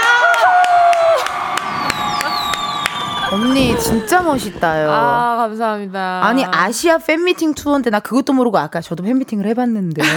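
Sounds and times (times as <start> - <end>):
clapping: 0.0 - 3.4
audience cheering with whoops and shouts: 0.0 - 5.4
speech: 3.3 - 10.1.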